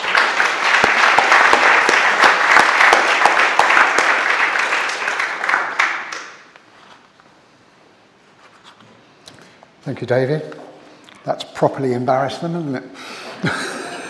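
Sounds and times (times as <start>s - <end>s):
audience applause: 0.0s - 6.6s
speech: 9.9s - 10.6s, 11.2s - 13.7s
laughter: 13.3s - 14.0s.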